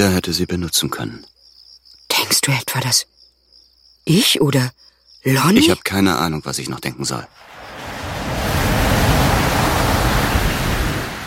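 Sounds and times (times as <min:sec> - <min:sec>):
speech: 0:00.0 - 0:01.3, 0:02.3 - 0:03.2, 0:04.0 - 0:07.5
ocean waves rolling onto a beach: 0:07.3 - 0:11.2.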